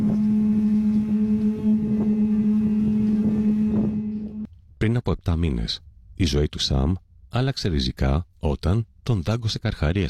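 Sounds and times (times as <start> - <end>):
conch shell being blown: 0.0 - 4.5
speech: 4.9 - 10.0.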